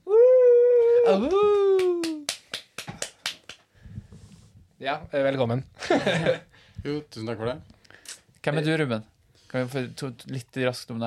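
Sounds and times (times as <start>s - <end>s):
speech: 1.1s - 1.7s, 4.8s - 11.0s
applause: 1.5s - 3.6s.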